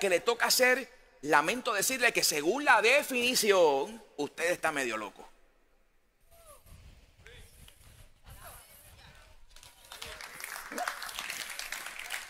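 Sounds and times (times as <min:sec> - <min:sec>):
speech: 0:00.0 - 0:05.3
audience applause: 0:09.6 - 0:12.2.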